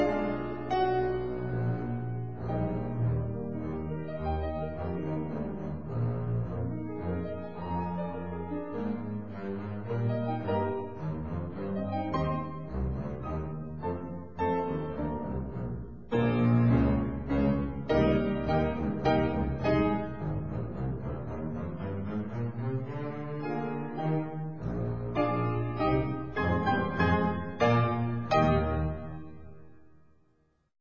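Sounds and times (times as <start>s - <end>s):
double bass: 0.0s - 29.5s.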